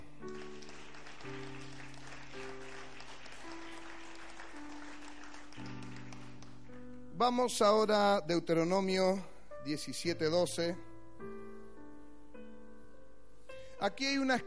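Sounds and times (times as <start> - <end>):
audience applauding: 0.0 - 6.8
speech: 7.2 - 10.9, 13.8 - 14.4.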